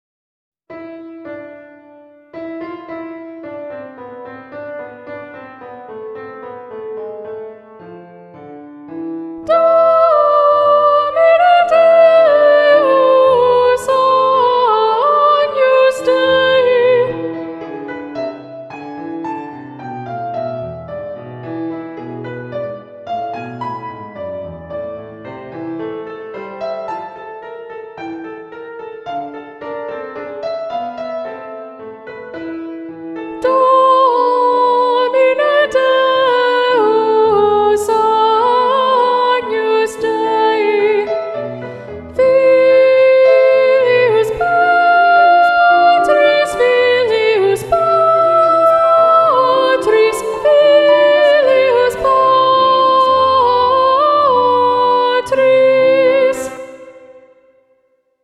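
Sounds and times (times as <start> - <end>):
soprano and alto singing, soprano predominant: 9.4 - 19.1, 33.2 - 57.6.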